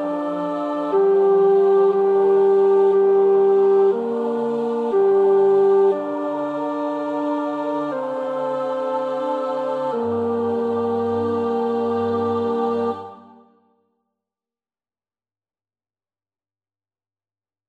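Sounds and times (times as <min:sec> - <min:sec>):
tenor singing: 0:00.0 - 0:13.4.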